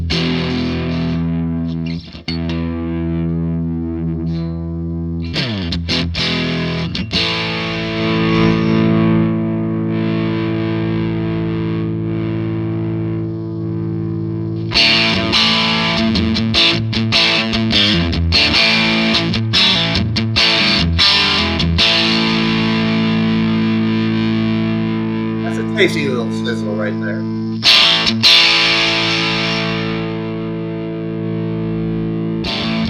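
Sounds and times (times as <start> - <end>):
electric guitar through overdrive pedal: 0.0 - 32.8.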